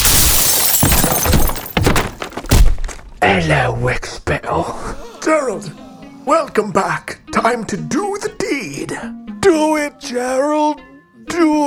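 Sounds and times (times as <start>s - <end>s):
vacuum cleaner being smashed, shattering: 0.0s - 2.8s
speech: 3.4s - 11.6s.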